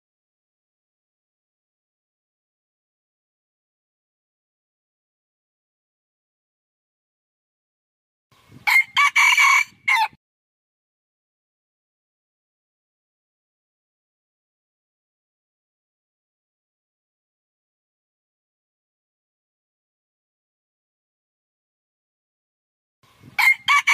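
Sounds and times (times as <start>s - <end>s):
red junglefowl crowing: 8.6s - 10.2s, 23.4s - 23.9s.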